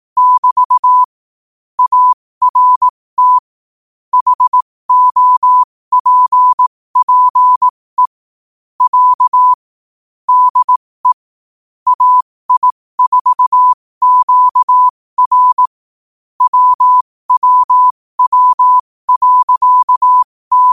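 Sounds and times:
morse code at 5 wpm: 0.2 - 1.1, 1.8 - 3.5, 4.1 - 8.2, 8.8 - 9.6, 10.3 - 11.2, 11.9 - 15.7, 16.4 - 20.7.

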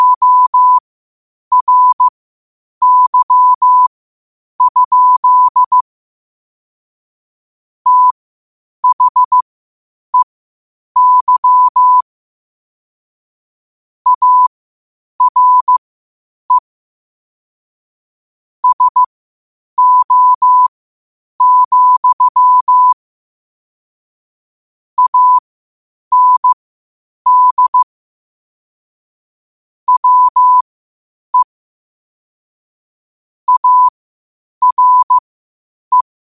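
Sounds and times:
morse code at 5 wpm: 0.0 - 0.8, 1.5 - 2.1, 2.8 - 3.9, 4.6 - 5.8, 7.9 - 8.2, 8.8 - 9.4, 11.0 - 12.0, 14.1 - 14.5, 15.2 - 15.8, 18.6 - 19.1, 19.8 - 20.7, 21.4 - 23.0, 25.0 - 25.4, 26.1 - 26.6, 27.3 - 27.9, 29.9 - 30.6, 33.5 - 33.9, 34.6 - 35.2.

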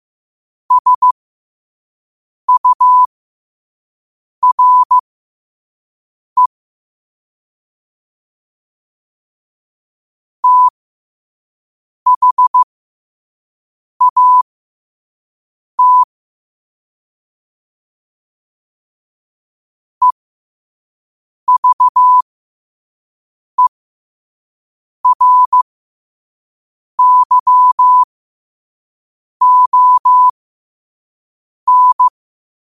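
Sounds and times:
morse code at 5 wpm: 0.7 - 1.2, 2.5 - 3.1, 4.4 - 5.0, 10.4 - 10.7, 12.1 - 12.7, 14.0 - 14.4, 15.8 - 16.1, 21.5 - 22.2, 25.0 - 25.6, 27.0 - 28.1, 29.4 - 30.3, 31.7 - 32.1.

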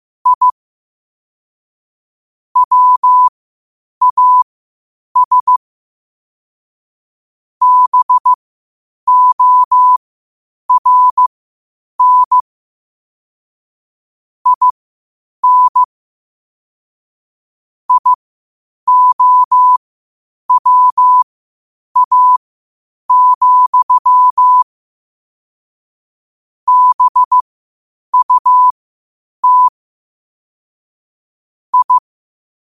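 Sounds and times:
morse code at 5 wpm: 0.2 - 0.5, 2.6 - 3.3, 4.0 - 4.4, 5.2 - 5.6, 7.6 - 8.4, 9.1 - 10.0, 10.7 - 11.3, 12.0 - 12.4, 14.5 - 14.7, 15.4 - 15.9, 17.9 - 18.2, 18.9 - 19.8, 20.5 - 21.2, 22.0 - 22.4, 23.1 - 24.6, 26.7 - 27.4, 28.1 - 28.8, 29.4 - 29.7, 31.7 - 32.0.

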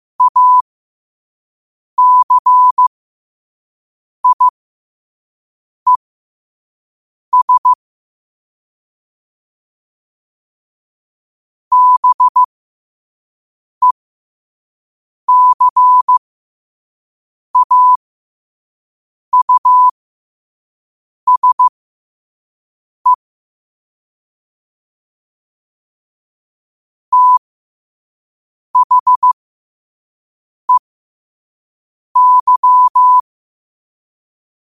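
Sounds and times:
morse code at 5 wpm: 0.2 - 0.6, 2.0 - 2.9, 4.2 - 4.5, 7.4 - 7.8, 11.7 - 12.5, 15.3 - 16.2, 17.6 - 18.0, 19.4 - 19.9, 21.3 - 21.7, 27.1 - 27.4, 28.8 - 29.4, 32.2 - 33.2.

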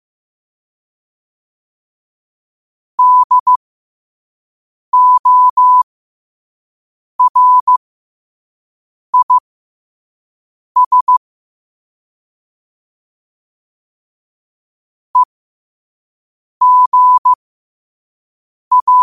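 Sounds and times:
morse code at 5 wpm: 3.0 - 3.6, 5.0 - 5.8, 7.2 - 7.8, 9.2 - 9.4, 10.8 - 11.2, 16.6 - 17.4, 18.7 - 19.0.

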